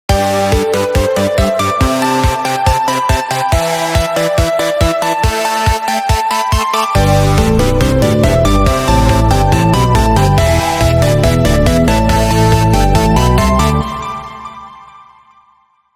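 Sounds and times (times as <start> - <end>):
cheerful melody: 0.1 - 15.3.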